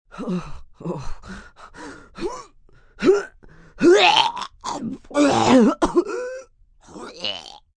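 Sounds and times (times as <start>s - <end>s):
woman vomiting: 3.8s - 6.4s
woman coughing: 5.2s - 6.4s.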